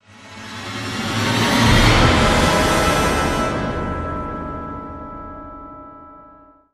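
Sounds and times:
short horn stinger: 0:00.8 - 0:05.4.

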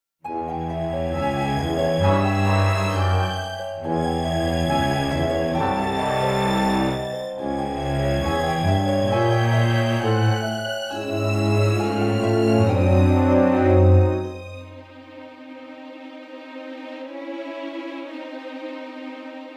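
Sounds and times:
music: 0:00.2 - 0:19.5.

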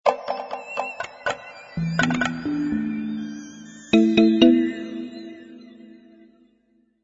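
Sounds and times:
theme music: 0:01.8 - 0:06.0.

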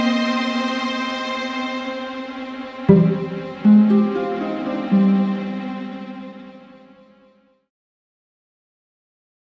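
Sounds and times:
tension music: 0:00.0 - 0:07.4.

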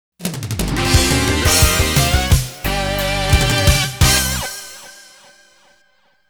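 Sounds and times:
stage clear jingle: 0:00.6 - 0:05.3.

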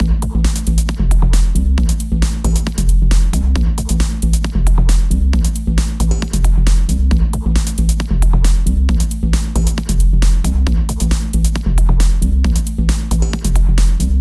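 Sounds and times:
rave game music loop: 0:00.0 - 0:14.2.

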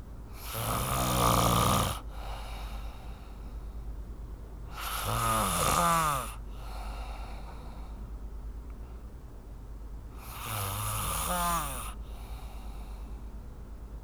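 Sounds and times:
real person snoring during sleep: 0:00.4 - 0:02.0, 0:04.8 - 0:06.4, 0:10.3 - 0:12.0.

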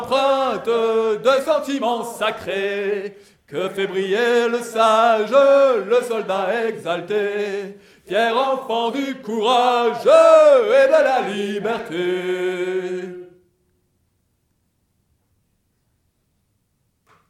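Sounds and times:
choir singing: 0:00.0 - 0:13.4.

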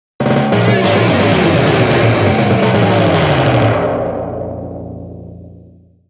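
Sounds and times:
game failure jingle: 0:00.6 - 0:03.7.

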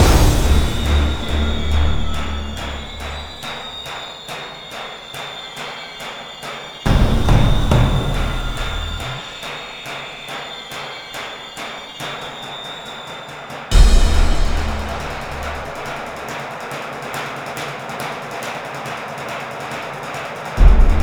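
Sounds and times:
suspense music: 0:00.0 - 0:04.0, 0:06.9 - 0:09.4, 0:13.7 - 0:16.2, 0:20.6 - 0:21.0.

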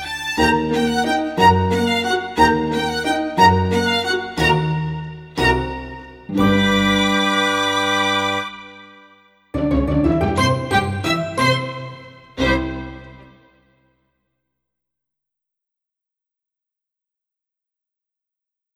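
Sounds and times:
classy waltz: 0:00.0 - 0:13.6.

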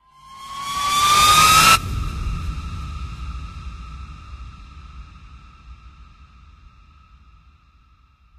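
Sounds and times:
swell: 0:00.1 - 0:06.7.

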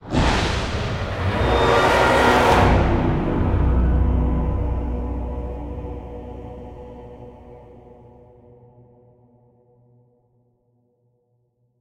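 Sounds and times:
string instrument: 0:00.0 - 0:08.6.

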